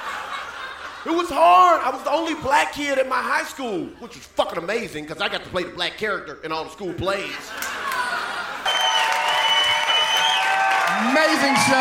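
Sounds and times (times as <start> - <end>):
laughter: 0.0 - 2.7, 7.1 - 9.2
speech: 1.0 - 7.6, 11.1 - 11.7
audience applause: 7.6 - 11.7
cheering and whooping: 7.7 - 11.7.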